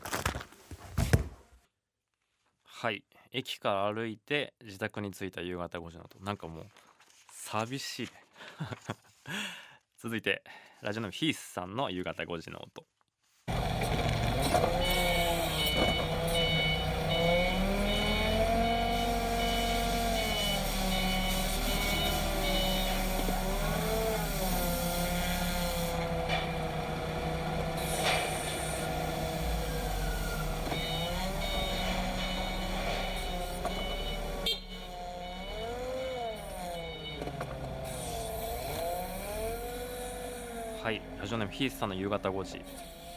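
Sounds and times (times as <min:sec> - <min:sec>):
speech: 0:02.8 - 0:06.8, 0:07.5 - 0:13.0, 0:14.5 - 0:15.1, 0:41.6 - 0:43.0
laughter: 0:08.4 - 0:09.2
forklift loading large products onto racks in a factory: 0:13.5 - 0:43.1.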